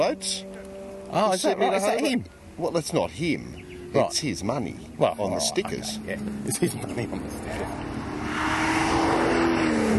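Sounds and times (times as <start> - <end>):
speech: 0.0 - 0.5, 1.1 - 8.6
Triumph TR7 or TR8 sports car engine roaring passing fast: 0.0 - 9.9.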